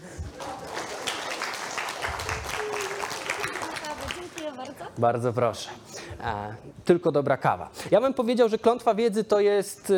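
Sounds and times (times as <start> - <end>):
audience applause: 0.0 - 4.8
speech: 5.0 - 9.9.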